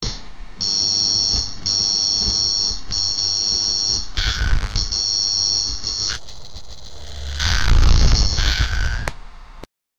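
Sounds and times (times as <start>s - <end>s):
hacking alert sound: 1.4s - 9.1s.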